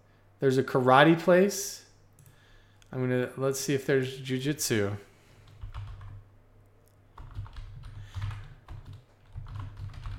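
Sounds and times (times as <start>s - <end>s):
speech: 0.4s - 1.8s, 2.9s - 5.1s
typing on a computer keyboard: 5.4s - 6.2s, 7.2s - 10.1s.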